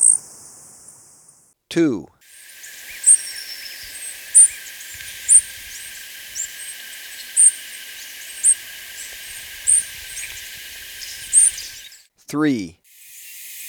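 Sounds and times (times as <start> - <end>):
Golden-crowned tanager calls in Ecuador: 0.0 - 1.1, 2.2 - 12.1.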